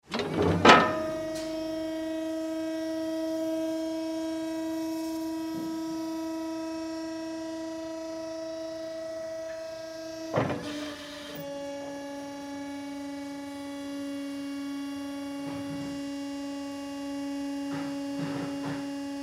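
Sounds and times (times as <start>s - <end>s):
forklift operating: 0.0s - 19.2s.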